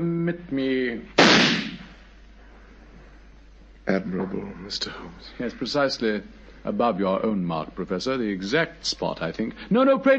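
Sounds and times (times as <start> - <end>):
speech: 0.0 - 1.6, 3.9 - 10.1
pistol gunshot fired into a wall: 1.2 - 1.9.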